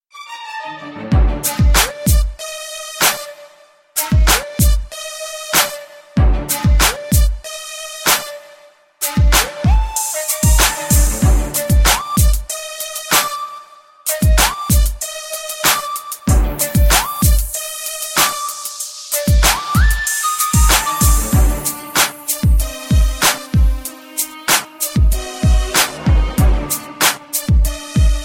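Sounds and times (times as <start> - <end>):
instrumental music: 0.1 - 28.2.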